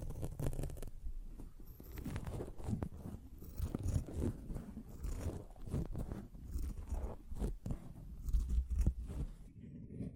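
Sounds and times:
sponge worked by hand scratching and squishing: 0.0 - 10.0.

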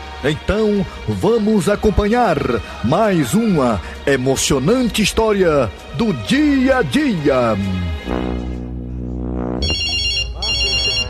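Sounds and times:
speech: 0.2 - 8.5
telephone electronic ringtone: 9.6 - 11.0.

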